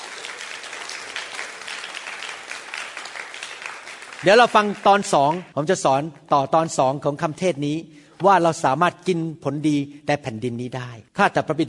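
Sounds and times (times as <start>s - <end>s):
audience clapping hands: 0.0s - 5.6s
speech: 4.2s - 11.6s.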